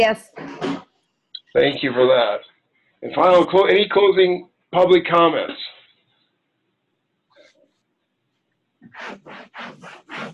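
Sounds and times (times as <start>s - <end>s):
speech: 0.0s - 0.8s, 1.5s - 5.8s, 9.0s - 10.2s
someone wiping a wall with rubbing strokes: 8.8s - 10.3s.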